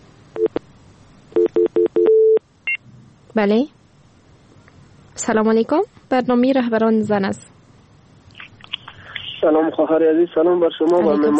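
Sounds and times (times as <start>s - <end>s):
telephone line tones signalling an incoming caller on a radio phone-in: 1.4s - 2.8s
speech: 3.4s - 3.8s, 5.2s - 7.5s, 9.4s - 11.3s.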